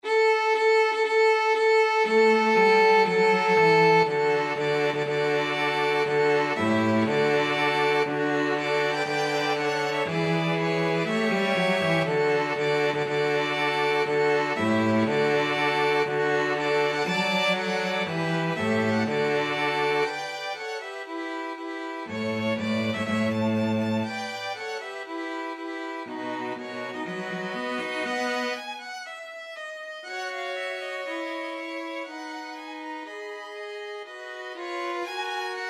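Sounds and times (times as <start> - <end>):
string quartet: 0.0 - 35.6.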